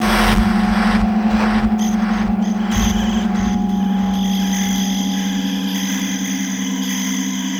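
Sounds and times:
ambience: 0.0 - 7.0.

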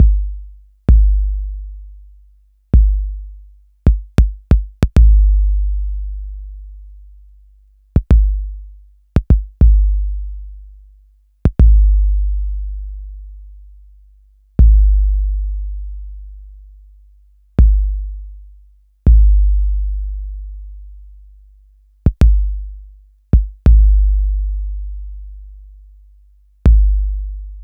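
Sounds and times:
TR-808 bass drum: 0.0 - 1.8, 2.8 - 6.4, 8.0 - 10.4, 11.5 - 12.7, 14.6 - 15.7, 17.6 - 18.3, 19.1 - 20.7, 22.0 - 25.3, 26.7 - 27.6.

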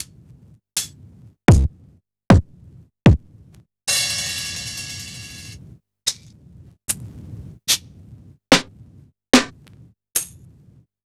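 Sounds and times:
vinyl drum kit: 1.5 - 2.5, 3.1 - 3.3, 3.9 - 5.6, 8.5 - 8.7, 9.4 - 9.6.

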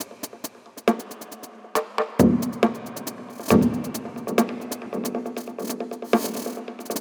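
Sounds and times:
drum n bass percussion loop: 0.0 - 6.9.

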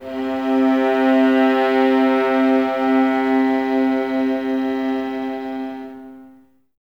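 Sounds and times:
violas playing C3 in a string ensemble: 0.0 - 6.6.

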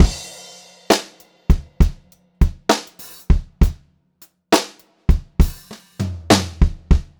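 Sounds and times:
pop-rock drum loop: 0.0 - 3.8, 4.5 - 7.1.

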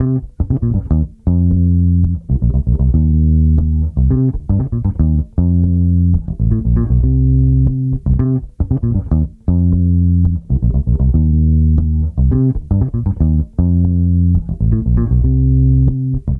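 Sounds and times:
disco bass in C minor: 0.0 - 16.3.

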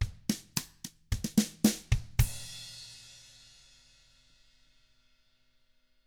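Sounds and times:
country drums: 0.0 - 3.3.

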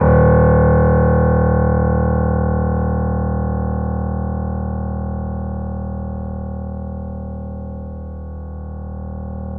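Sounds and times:
piano note D sharp: 0.0 - 9.5.

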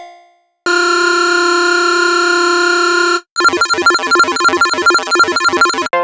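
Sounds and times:
synth leads: 0.7 - 5.9.

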